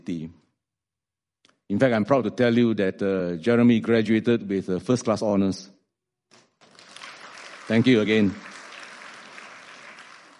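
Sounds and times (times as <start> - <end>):
speech: 0.0 - 0.4, 1.7 - 5.8, 7.7 - 8.5
audience clapping: 6.3 - 10.3.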